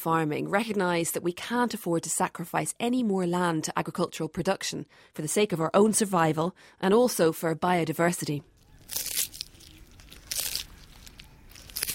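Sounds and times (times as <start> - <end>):
speech: 0.0 - 9.1
Aldabra tortoise crunching chicory: 8.6 - 11.9
rustling and tearing of chicory: 8.6 - 11.9.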